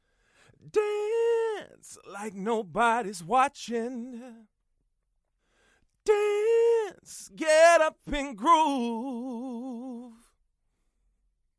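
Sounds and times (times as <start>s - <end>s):
solo male vocal recorded through Manley equipment: 0.6s - 4.4s, 6.0s - 10.3s.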